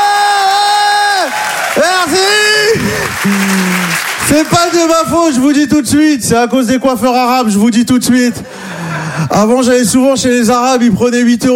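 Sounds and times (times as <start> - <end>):
crowd whooping and cheering: 0.0 - 4.5
audience clapping: 0.4 - 5.5
speech: 4.4 - 11.5.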